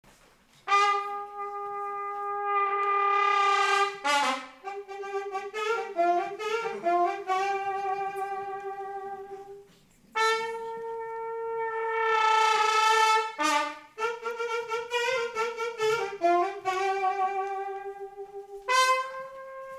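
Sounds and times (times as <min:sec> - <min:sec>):
fanfare: 0:00.7 - 0:09.6, 0:10.2 - 0:19.7.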